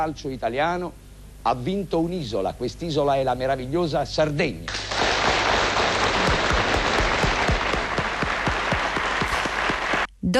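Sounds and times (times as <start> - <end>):
speech: 0.0 - 4.9
large stadium crowd applause: 4.7 - 10.1.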